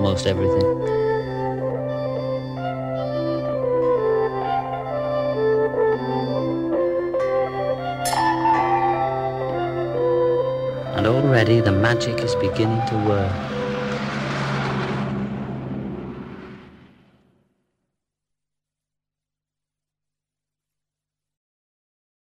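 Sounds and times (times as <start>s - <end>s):
mellotron music: 0.0s - 17.3s.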